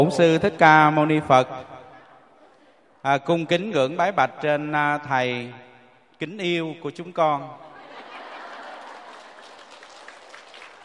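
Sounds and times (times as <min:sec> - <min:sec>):
speech: 0:00.0 - 0:01.7, 0:03.0 - 0:05.6, 0:06.2 - 0:07.6
laughter: 0:02.0 - 0:02.9, 0:07.6 - 0:10.0
audience of Buddhist followers applauding: 0:08.2 - 0:10.8.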